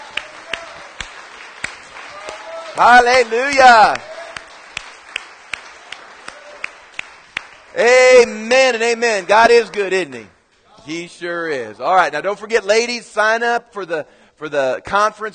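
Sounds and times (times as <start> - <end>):
church congregation applauding during a morning service: 0.0 - 10.3
speech: 2.8 - 4.1, 7.8 - 15.3
person shouting: 7.8 - 8.6.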